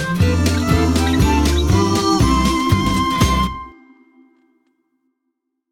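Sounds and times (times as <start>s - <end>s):
karaoke singing: 0.1s - 3.6s.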